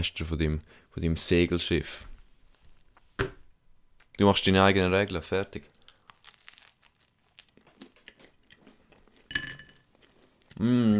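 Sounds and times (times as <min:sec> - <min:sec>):
speech: 0:00.0 - 0:02.1, 0:04.2 - 0:05.8, 0:10.6 - 0:10.9
chewing and biting into bread: 0:05.6 - 0:10.6.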